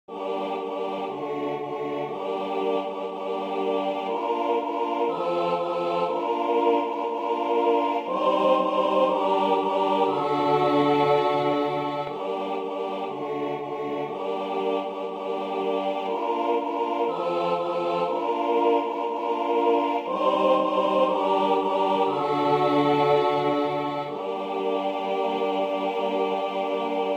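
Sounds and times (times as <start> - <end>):
full ensemble tutti passage: 0.1 - 27.1.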